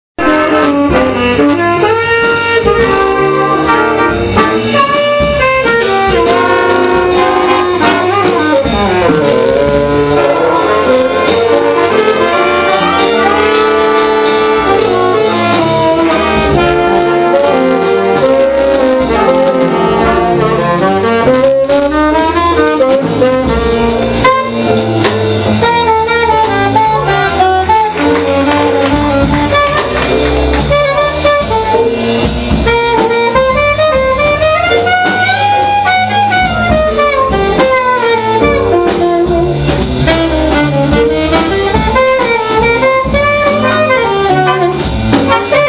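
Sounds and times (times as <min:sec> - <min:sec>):
jazz band playing in a jazz club: 0:00.2 - 0:45.6.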